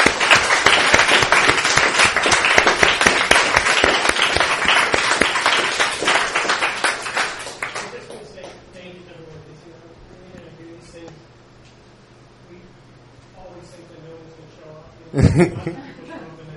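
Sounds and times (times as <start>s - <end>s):
applause: 0.0s - 8.6s
laughter: 15.2s - 16.4s.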